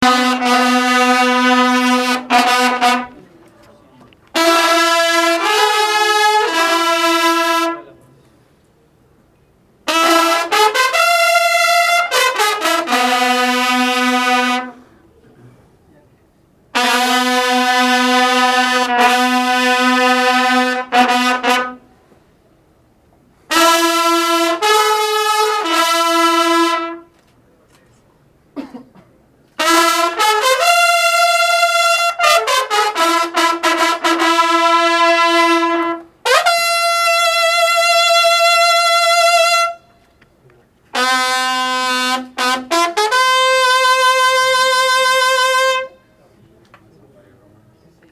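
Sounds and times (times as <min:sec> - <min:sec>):
group of trumpets for Semana Santa: 0:00.0 - 0:08.1, 0:09.8 - 0:15.0, 0:16.7 - 0:22.0, 0:23.5 - 0:27.2, 0:29.5 - 0:40.2, 0:40.9 - 0:46.3.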